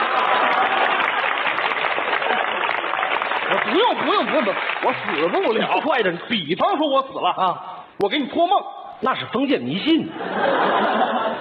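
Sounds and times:
live audience applauding at a stage comedy performance: 0.0 - 6.3
speech: 3.8 - 11.2
laughter: 9.9 - 11.3.

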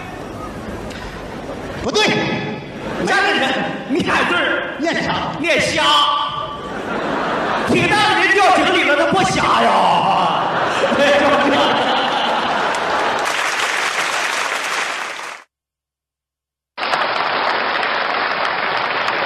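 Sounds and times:
laughter: 1.3 - 4.6, 6.3 - 13.4
speech: 1.8 - 2.4, 3.4 - 6.2
audience applause: 11.0 - 15.5, 16.8 - 19.2.

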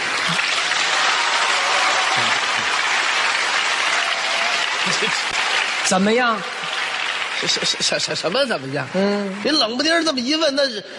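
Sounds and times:
audience applause: 0.0 - 9.4
speech: 0.3 - 0.5, 5.0 - 5.3, 5.9 - 6.6, 7.4 - 10.9.

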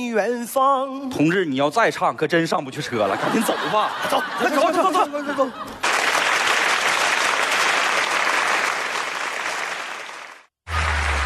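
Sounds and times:
speech: 0.0 - 5.8
laughter: 2.8 - 5.8
warm applause from live audience: 5.8 - 11.2.

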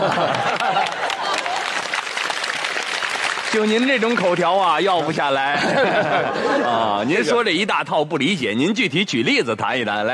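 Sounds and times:
laughter: 0.0 - 1.9, 5.3 - 7.4
audience applause: 0.0 - 5.3
speech: 3.5 - 10.1.

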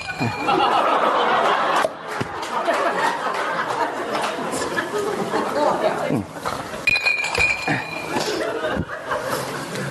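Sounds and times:
people chuckling: 0.0 - 6.8, 7.5 - 9.8
cups clinking together in a toast: 6.8 - 8.5.

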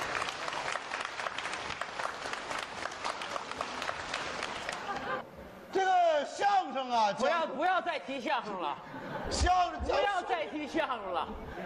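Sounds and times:
audience applause: 0.0 - 5.2
speech: 6.8 - 11.5.

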